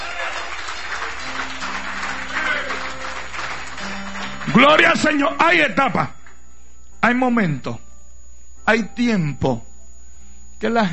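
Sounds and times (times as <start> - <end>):
audience applause: 0.0 - 5.2
speech: 4.6 - 6.2, 7.0 - 7.8, 8.7 - 9.7, 10.6 - 10.9.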